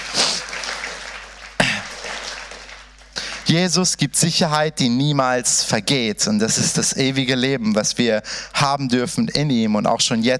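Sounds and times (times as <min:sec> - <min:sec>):
audience applause: 0:00.0 - 0:03.6
speech: 0:03.5 - 0:10.3.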